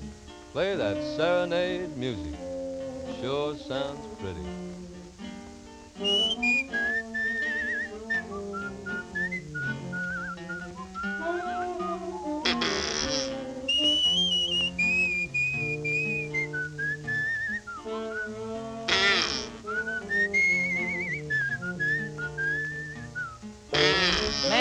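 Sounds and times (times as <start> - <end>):
speech: 0.6 - 2.4, 3.2 - 4.7
whistled bird call: 6.0 - 18.4, 18.9 - 24.5.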